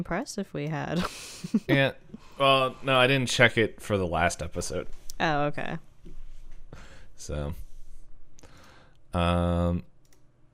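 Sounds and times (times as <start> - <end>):
speech: 0.0 - 5.9, 6.7 - 7.6, 9.1 - 9.9
computer mouse clicking: 10.0 - 10.3.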